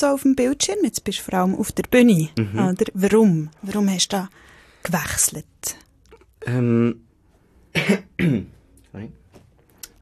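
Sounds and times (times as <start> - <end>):
speech: 0.0 - 5.8, 6.4 - 7.0, 7.7 - 9.2
throat clearing: 7.8 - 8.6.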